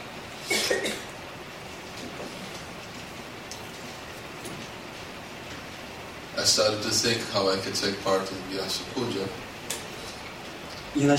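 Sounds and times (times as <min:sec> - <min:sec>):
hiss: 0:00.0 - 0:11.1
person coughing from lungs aggravated by speaking: 0:00.4 - 0:01.1
speech: 0:06.4 - 0:09.5, 0:11.0 - 0:11.1.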